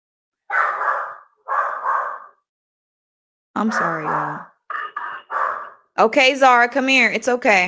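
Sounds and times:
dog barking at the doorbell: 0:00.5 - 0:02.4, 0:03.7 - 0:04.5, 0:05.3 - 0:05.9
speech: 0:03.6 - 0:04.5, 0:06.0 - 0:07.6.

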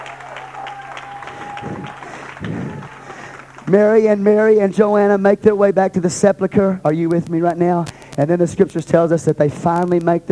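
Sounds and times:
audience clapping: 0:00.0 - 0:04.2
speech: 0:03.7 - 0:10.3.

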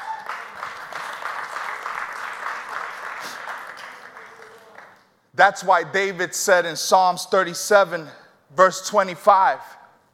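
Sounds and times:
audience clapping: 0:00.0 - 0:05.2
speech: 0:05.4 - 0:09.8.

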